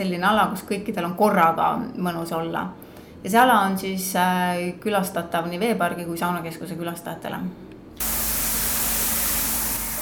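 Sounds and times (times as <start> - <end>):
speech: 0.0 - 8.1
rain room shower spraying water: 8.0 - 10.0.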